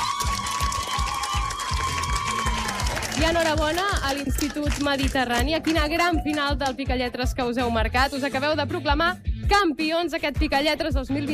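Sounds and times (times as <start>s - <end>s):
applause for contestants: 0.0s - 6.8s
speech: 3.2s - 11.3s.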